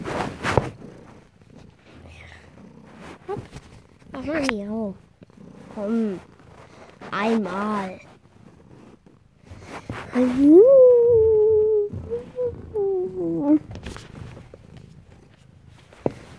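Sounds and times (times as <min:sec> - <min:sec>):
cat purring: 0:00.0 - 0:16.3
speech: 0:04.2 - 0:05.1, 0:05.8 - 0:06.3, 0:07.1 - 0:08.1, 0:10.2 - 0:10.8.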